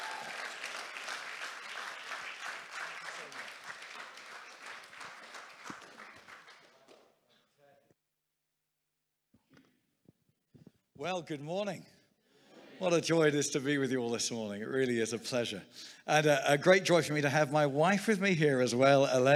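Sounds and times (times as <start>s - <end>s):
audience applause: 0.0s - 7.0s
speech: 11.0s - 11.9s, 12.8s - 19.3s.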